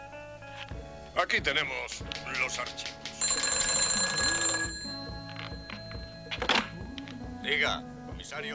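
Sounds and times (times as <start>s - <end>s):
speech: 1.2s - 3.1s, 7.4s - 8.5s
field telephone bell ringing: 3.2s - 7.8s.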